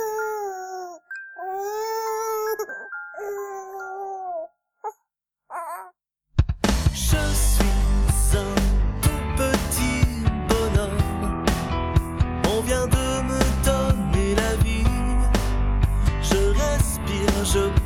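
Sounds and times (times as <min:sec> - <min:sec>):
infant wailing and whimpering: 0:00.0 - 0:06.0
loud full-band music: 0:06.6 - 0:17.8.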